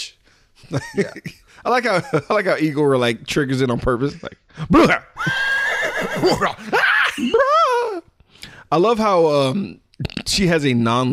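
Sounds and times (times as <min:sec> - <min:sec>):
speech: 0:00.6 - 0:05.4, 0:06.2 - 0:07.6, 0:08.7 - 0:11.1
horse neighing in a film scene: 0:05.2 - 0:06.6.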